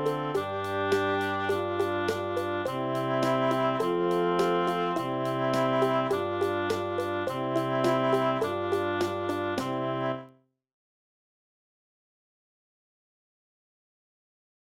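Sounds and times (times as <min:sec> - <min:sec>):
boomwhackers playing at a Sinterklaas party: 0:00.0 - 0:10.1.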